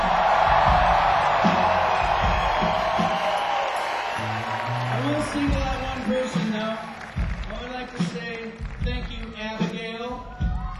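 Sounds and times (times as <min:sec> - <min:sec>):
crowd cheering and whoops: 0:00.0 - 0:07.7, 0:10.1 - 0:10.7
crowd applause: 0:00.0 - 0:10.7.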